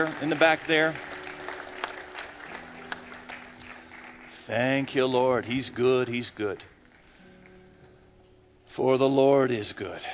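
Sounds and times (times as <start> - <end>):
speech: 0.0 - 1.1, 4.5 - 6.7, 8.8 - 10.1
audience hand clapping: 0.0 - 7.8.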